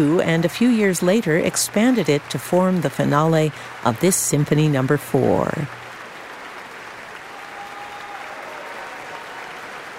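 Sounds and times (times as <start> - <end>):
speech: 0.0 - 5.8
audience cheering in a concert hall: 5.7 - 9.9.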